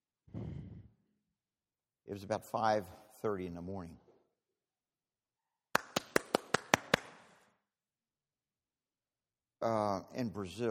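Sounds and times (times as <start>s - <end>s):
speech: 2.1s - 4.0s, 9.6s - 10.6s
hand claps at a doorway instead of knocking: 5.7s - 7.4s.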